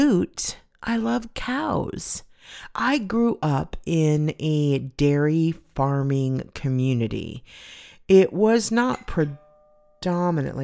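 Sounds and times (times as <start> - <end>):
speech: 0.0 - 9.4, 10.0 - 10.6
faint steady two-tone chime: 9.0 - 10.3.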